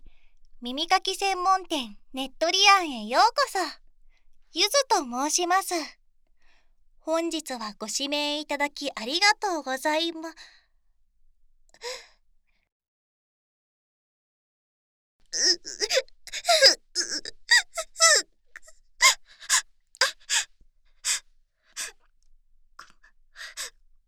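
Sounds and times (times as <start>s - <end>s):
speech: 0.6s - 3.8s, 4.5s - 6.0s, 7.0s - 10.6s, 11.8s - 12.1s, 15.3s - 18.3s
woman sobbing: 15.4s - 20.5s.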